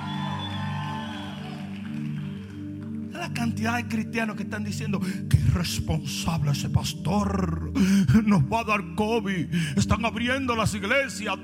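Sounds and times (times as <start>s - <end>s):
audience shouting and cheering: 0.0s - 2.3s
speech: 3.2s - 11.4s.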